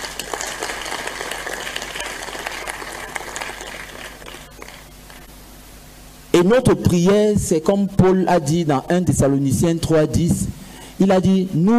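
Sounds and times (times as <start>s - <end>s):
audience applauding: 0.0s - 5.3s
speech: 6.4s - 11.7s.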